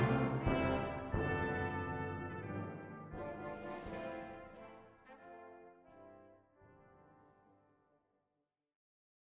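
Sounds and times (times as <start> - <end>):
full brass ensemble introit and flourish: 0.0 - 7.2.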